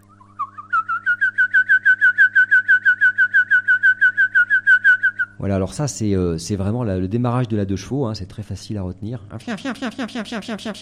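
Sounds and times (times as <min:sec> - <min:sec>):
whistled imitation of Eurasian wryneck song: 0:00.0 - 0:05.4
faint low hum: 0:00.0 - 0:10.7
speech: 0:05.4 - 0:10.7.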